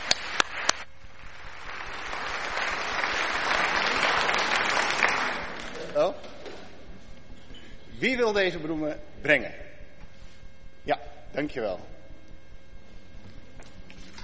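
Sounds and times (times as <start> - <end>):
audience applause: 0.0 - 6.1
speech: 8.0 - 9.6, 10.9 - 12.0.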